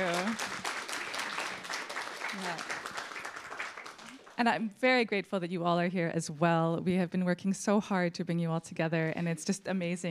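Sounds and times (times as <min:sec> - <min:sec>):
audience applause: 0:00.0 - 0:04.4
speech: 0:04.4 - 0:10.1.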